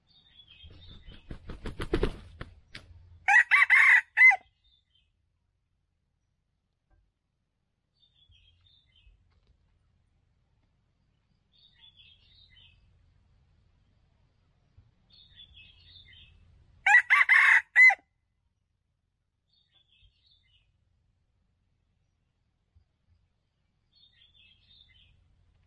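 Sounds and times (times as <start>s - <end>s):
red junglefowl crowing: 3.3s - 4.4s, 16.9s - 18.0s.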